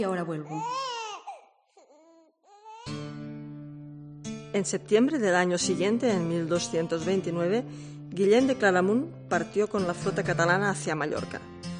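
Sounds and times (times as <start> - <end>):
speech: 0.0 - 0.9, 4.5 - 11.5
baby crying: 0.5 - 3.0.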